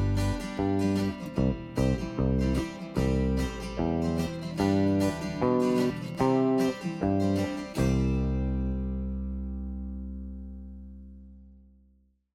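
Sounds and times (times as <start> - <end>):
backing track music: 0.0 - 9.7.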